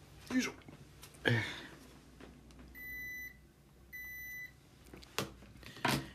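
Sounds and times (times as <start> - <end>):
speech: 0.3 - 0.6, 1.2 - 1.6
air conditioner beeps when switched off: 2.7 - 4.6.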